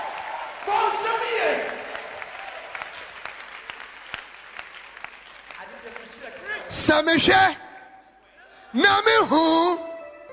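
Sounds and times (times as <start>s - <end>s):
people clapping: 0.0s - 7.1s
speech: 6.9s - 7.6s, 8.7s - 9.9s.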